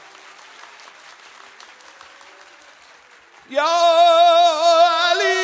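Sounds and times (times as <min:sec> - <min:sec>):
group hand clapping at a Persian devotional celebration honoring Imam Ali: 0:00.0 - 0:05.3
speech: 0:03.5 - 0:03.8.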